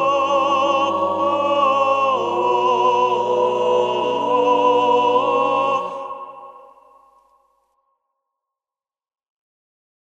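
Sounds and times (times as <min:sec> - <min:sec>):
choir singing: 0:00.0 - 0:07.2.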